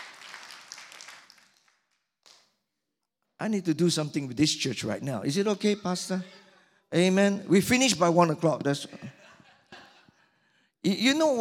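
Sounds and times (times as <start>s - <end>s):
roomful of people clapping together: 0.0s - 2.6s
speech: 3.4s - 9.2s, 10.8s - 11.3s.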